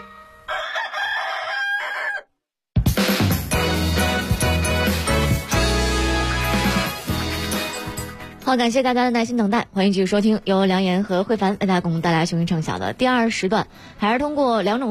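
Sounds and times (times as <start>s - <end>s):
rooster crowing: 0.4s - 2.4s
loud full band music: 2.9s - 8.4s
speech: 8.5s - 14.9s.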